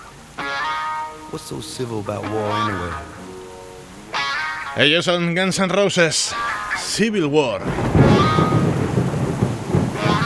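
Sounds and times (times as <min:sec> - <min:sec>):
thunderstorm rain hiss: 0:00.0 - 0:10.2
speech: 0:01.3 - 0:03.3, 0:04.8 - 0:08.4
deep rolling thunder: 0:07.6 - 0:10.2.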